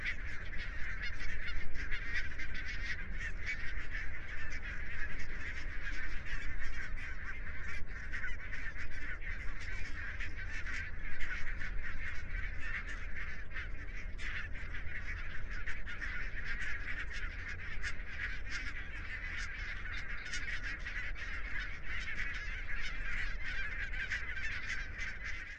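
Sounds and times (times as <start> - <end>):
barnacle goose calling: 0.0 - 25.5.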